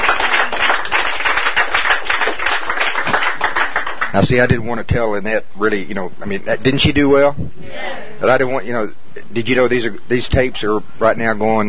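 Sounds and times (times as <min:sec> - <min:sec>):
crowd applause: 0:00.0 - 0:04.2
speech: 0:04.1 - 0:11.6.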